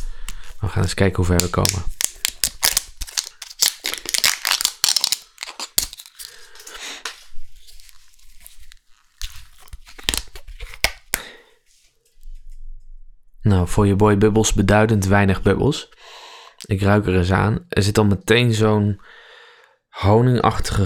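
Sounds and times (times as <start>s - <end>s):
crinkly plastic wrapper being peeled and torn off a bottle: 0.0s - 11.4s
speech: 0.6s - 2.0s, 13.4s - 16.0s, 16.7s - 19.2s, 20.0s - 20.8s.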